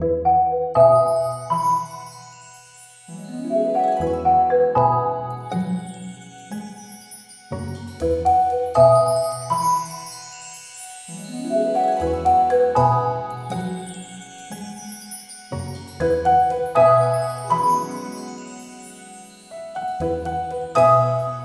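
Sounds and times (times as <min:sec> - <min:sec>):
marimba mix: 0:00.2 - 0:21.4.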